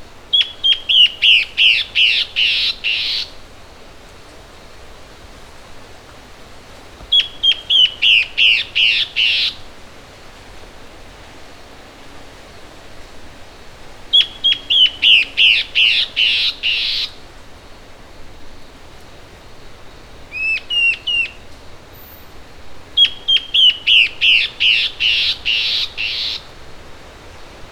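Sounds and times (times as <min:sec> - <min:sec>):
bird rasping calls: 0:00.3 - 0:03.4, 0:06.9 - 0:09.7, 0:14.1 - 0:17.2, 0:20.3 - 0:21.4, 0:22.0 - 0:26.6.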